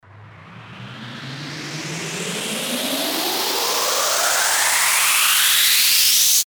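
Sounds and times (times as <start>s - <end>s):
riser sweep: 0.0s - 6.4s.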